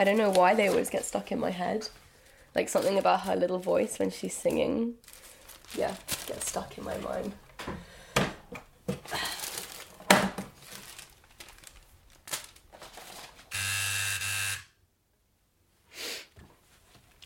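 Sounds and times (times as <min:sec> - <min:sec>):
speech: 0:00.0 - 0:07.9
crinkling and rustling: 0:00.0 - 0:13.5, 0:16.4 - 0:17.2
tattoo gun buzzing: 0:13.5 - 0:14.8.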